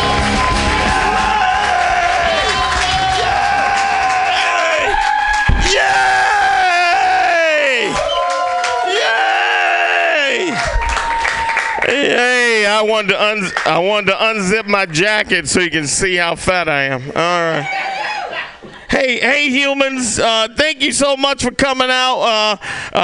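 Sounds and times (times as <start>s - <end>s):
crowd clapping: 0.0s - 6.0s, 7.6s - 9.2s, 10.4s - 12.8s, 13.4s - 13.9s
crowd cheering and whooping: 0.0s - 12.6s, 17.5s - 18.6s
speech: 12.8s - 18.0s, 19.0s - 23.0s.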